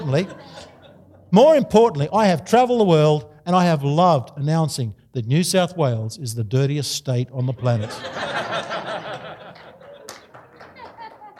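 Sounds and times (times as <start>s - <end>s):
audience laughter: 0.0s - 1.3s, 7.4s - 11.3s
speech: 0.1s - 0.7s, 1.3s - 8.7s
audience clapping: 8.6s - 11.3s.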